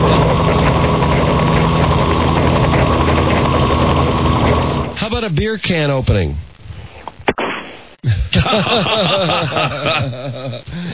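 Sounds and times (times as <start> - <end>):
chopper motorcycle engine idling: 0.0 - 4.9
speech: 5.3 - 6.5, 8.4 - 10.9
laughter: 8.1 - 10.9.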